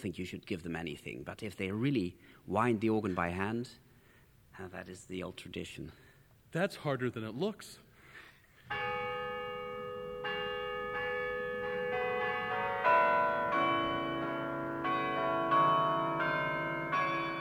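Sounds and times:
speech: 0.0s - 3.9s, 4.6s - 7.8s, 8.7s - 9.0s
carillon of the 14th century cathedral tower in Utrecht: 8.7s - 17.3s.

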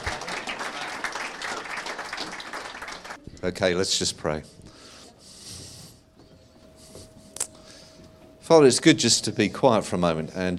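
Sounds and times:
audience applause welcoming a speaker: 0.0s - 3.2s
speech: 3.4s - 4.6s, 8.5s - 10.5s.

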